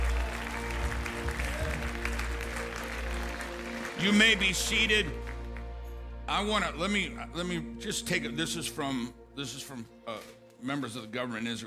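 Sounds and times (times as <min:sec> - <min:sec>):
audience clapping: 0:00.0 - 0:06.0
speech: 0:04.0 - 0:05.3, 0:06.3 - 0:11.6.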